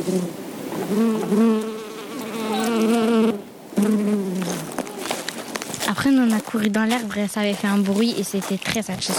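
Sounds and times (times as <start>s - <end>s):
bees buzzing close to microphone: 0.0s - 5.2s
speech: 0.1s - 1.7s, 6.2s - 9.1s.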